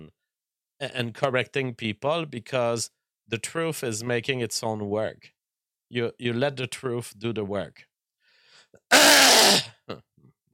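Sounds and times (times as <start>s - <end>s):
speech: 0.8s - 7.9s, 8.7s - 10.1s
cough: 8.9s - 10.1s.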